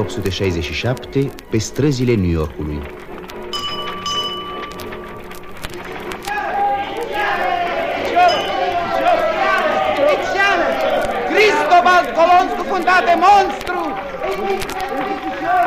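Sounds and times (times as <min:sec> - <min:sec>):
speech: 0:00.0 - 0:03.0
bustling crowd voices chattering and calling out: 0:00.0 - 0:15.6
ringing bell-like tones: 0:03.5 - 0:06.0, 0:08.1 - 0:10.1.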